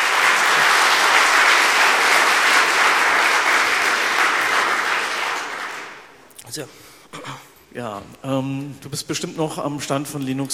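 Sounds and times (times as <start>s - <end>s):
audience applause: 0.0s - 6.2s
speech: 6.6s - 10.5s.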